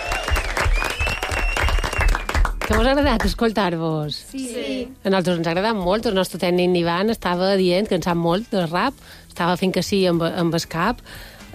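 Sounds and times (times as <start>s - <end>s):
applause: 0.0s - 3.4s
speech: 2.7s - 11.5s.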